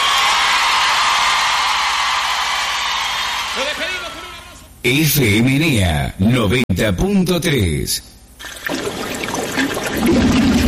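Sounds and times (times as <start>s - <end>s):
audience applause and cheering: 0.0s - 4.4s
speech: 4.8s - 8.8s, 10.0s - 10.5s.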